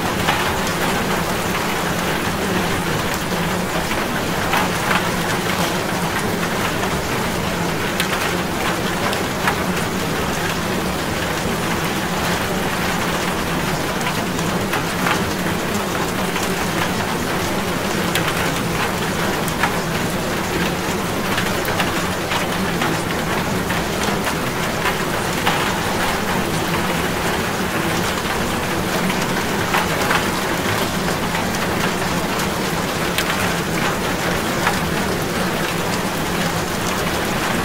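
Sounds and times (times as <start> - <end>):
rain: 0.0 - 37.6.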